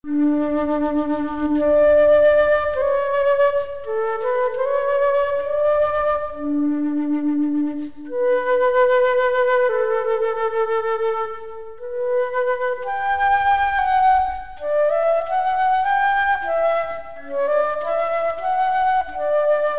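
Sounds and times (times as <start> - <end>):
solo flute: 0.0 - 19.7.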